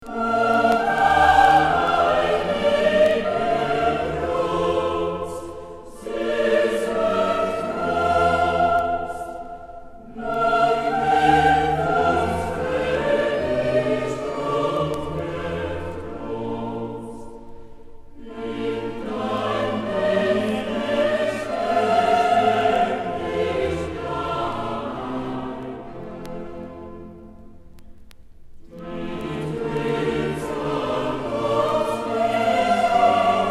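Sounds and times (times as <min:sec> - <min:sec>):
choir singing a motet: 0:00.0 - 0:27.2, 0:28.7 - 0:33.4.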